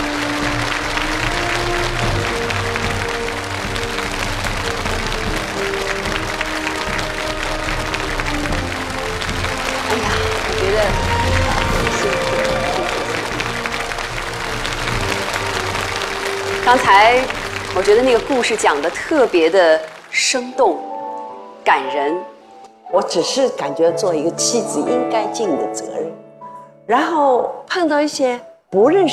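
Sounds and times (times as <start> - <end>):
sustained audience applause: 0.0 - 20.5
speech: 16.9 - 20.9, 21.7 - 22.3, 22.9 - 26.2, 26.9 - 29.1.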